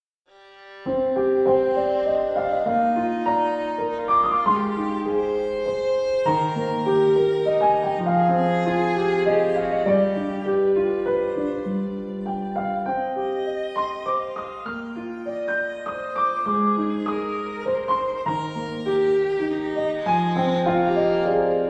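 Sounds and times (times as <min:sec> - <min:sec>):
piano: 0:00.3 - 0:21.6.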